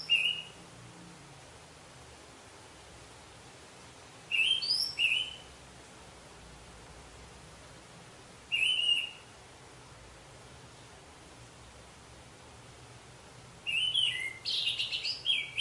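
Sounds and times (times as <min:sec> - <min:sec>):
orange-headed thrush whistled phrases: 0:04.3 - 0:05.5, 0:08.5 - 0:09.3, 0:13.7 - 0:15.5.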